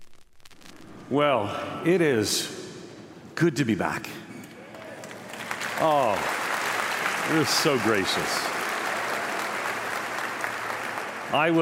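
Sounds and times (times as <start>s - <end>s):
speech: 1.1s - 2.6s, 3.4s - 4.2s, 5.8s - 6.4s, 7.3s - 8.5s, 11.3s - 11.5s
audience clapping: 4.6s - 11.5s.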